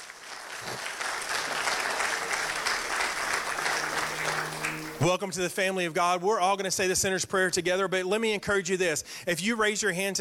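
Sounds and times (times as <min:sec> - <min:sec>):
church congregation applauding: 0:00.0 - 0:05.2
speech: 0:05.0 - 0:10.2.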